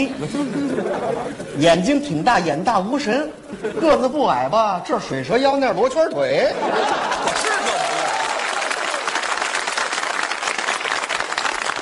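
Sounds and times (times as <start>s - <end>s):
laughter: 0.0s - 1.6s, 6.4s - 8.8s
speech: 0.0s - 7.6s
audience applause at a crosstalk comedy show: 7.1s - 11.8s.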